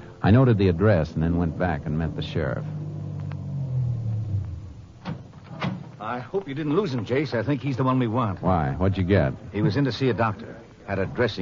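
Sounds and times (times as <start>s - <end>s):
speech: 0.3s - 2.8s, 6.2s - 11.4s
car engine pulling away from curb: 0.3s - 5.4s.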